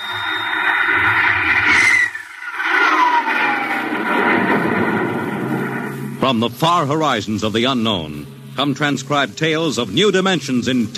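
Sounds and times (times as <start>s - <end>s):
rocket blastoff roar: 0.0s - 8.0s
speech: 6.3s - 10.9s.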